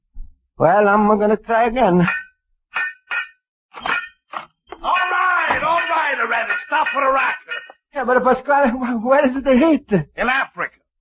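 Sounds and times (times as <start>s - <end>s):
speech: 0.6s - 2.2s, 6.3s - 10.8s
banging on steam pipes: 2.0s - 7.9s.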